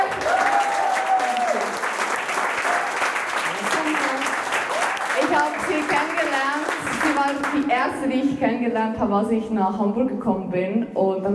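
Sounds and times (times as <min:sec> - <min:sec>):
applause: 0:00.0 - 0:08.0
speech: 0:07.8 - 0:11.3.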